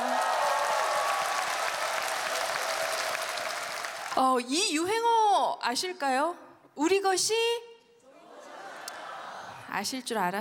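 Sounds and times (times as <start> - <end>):
audience applause: 0.0 - 4.2
speech: 4.2 - 7.7, 9.8 - 10.3.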